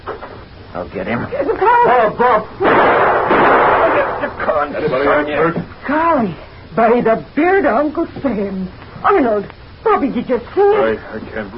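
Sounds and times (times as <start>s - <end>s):
speech: 0.8s - 11.5s
pistol gunshots in a rapid barrage: 2.6s - 4.6s.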